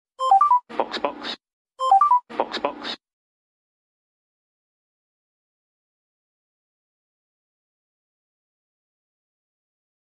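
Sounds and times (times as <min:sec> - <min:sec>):
ringtone: 0:00.2 - 0:00.7, 0:01.8 - 0:02.3.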